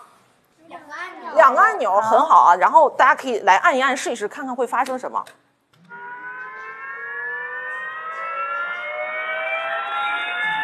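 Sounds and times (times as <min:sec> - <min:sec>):
speech: 0:01.5 - 0:05.4
siren with Doppler pitch shift: 0:05.8 - 0:10.6.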